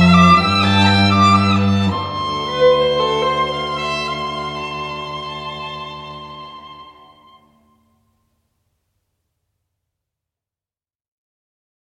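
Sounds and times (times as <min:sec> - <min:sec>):
professional string ensemble playing: 0:00.0 - 0:07.9.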